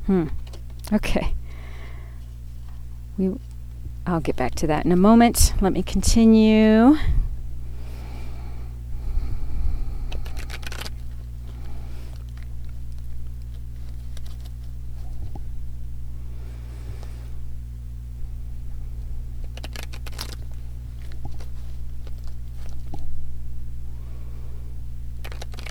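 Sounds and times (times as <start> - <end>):
low hum: 0.0 - 25.6
speech: 0.1 - 1.4, 3.2 - 7.2
cards shuffled by hand: 10.1 - 15.5, 19.4 - 23.2, 25.2 - 25.6.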